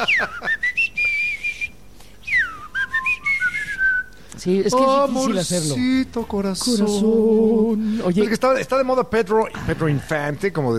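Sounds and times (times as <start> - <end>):
speech: 0.0 - 0.6, 4.4 - 10.7
person whistling a song melody: 0.0 - 4.2.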